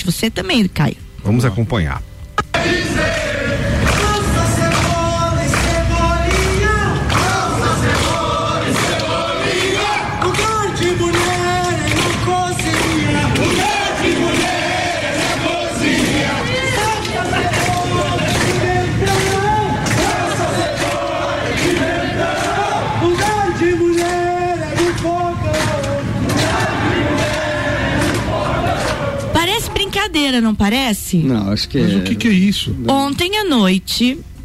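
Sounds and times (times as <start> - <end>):
speech: 0.1 - 2.8, 30.3 - 34.3
group of about fifty people running and chanting in unison: 2.5 - 29.8.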